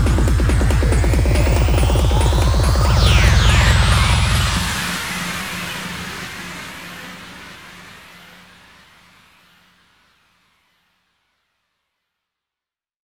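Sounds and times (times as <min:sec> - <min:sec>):
hands up trance fills: 0:00.0 - 0:06.2
140 BPM drone: 0:00.0 - 0:09.0.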